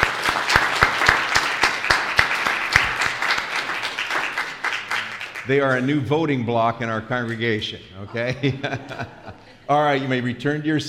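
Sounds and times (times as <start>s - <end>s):
round of applause: 0.0s - 5.8s
speech: 5.5s - 10.8s
laughter: 8.0s - 10.3s.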